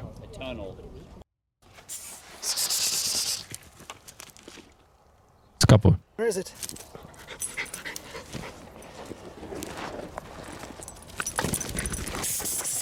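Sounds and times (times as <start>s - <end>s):
speech: 0.3s - 1.1s, 5.7s - 7.0s
patter of paws or clicking steps: 6.6s - 12.4s
dog panting while hunting a rat: 6.9s - 9.0s.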